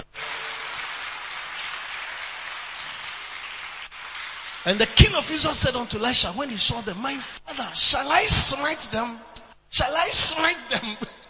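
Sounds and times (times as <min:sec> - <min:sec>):
audience clapping: 0:00.0 - 0:06.5
speech: 0:04.6 - 0:11.1.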